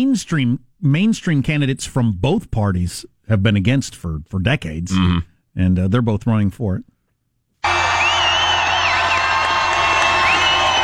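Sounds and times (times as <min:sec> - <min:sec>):
speech: 0:00.0 - 0:06.9
crowd cheering: 0:07.6 - 0:10.8.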